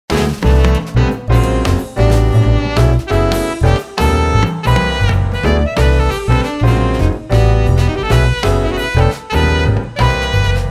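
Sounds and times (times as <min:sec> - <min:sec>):
jazz music: 0:00.1 - 0:10.6.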